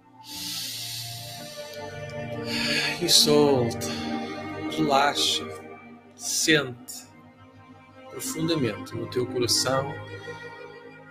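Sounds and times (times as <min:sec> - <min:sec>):
deep inhalation during a guided breathing exercise: 0:00.2 - 0:03.0, 0:03.8 - 0:04.6
speech: 0:03.0 - 0:04.0, 0:04.8 - 0:05.6, 0:06.2 - 0:07.0, 0:08.2 - 0:10.6.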